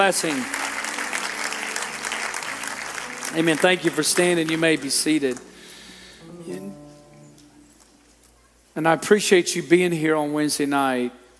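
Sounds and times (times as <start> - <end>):
speech: 0.0 - 0.6, 3.3 - 5.5, 8.8 - 11.2
audience clapping hands: 0.0 - 5.9.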